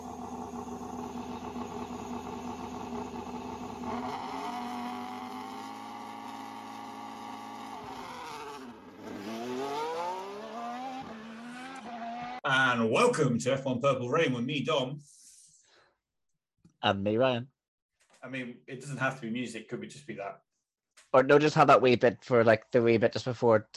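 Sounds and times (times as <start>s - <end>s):
car engine starting up, revving and driving off: 0.0s - 12.4s
speech: 12.8s - 15.1s, 16.8s - 17.6s, 18.2s - 20.5s, 21.1s - 23.7s.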